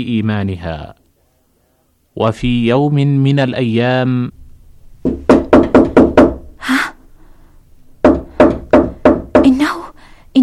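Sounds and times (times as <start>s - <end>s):
speech: 0.0s - 1.0s, 2.2s - 4.4s
firm knocks on a door: 5.0s - 6.5s, 8.0s - 9.7s.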